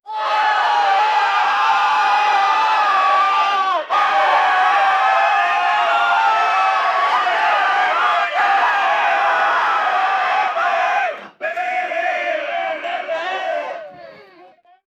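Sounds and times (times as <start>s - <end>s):
people shouting and arguing: 0.1s - 14.8s.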